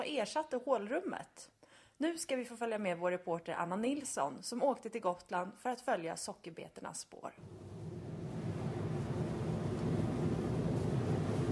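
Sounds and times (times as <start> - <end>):
speech: 0.0 - 7.8
car driving a winding cliff road between Visby and Klintehamn on Gotland: 7.4 - 11.4.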